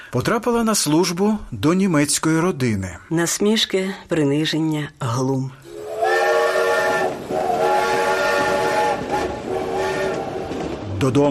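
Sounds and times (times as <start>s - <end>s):
speech: 0.1s - 5.7s, 11.0s - 11.2s
train carriage wheels clattering on rails: 6.2s - 11.2s.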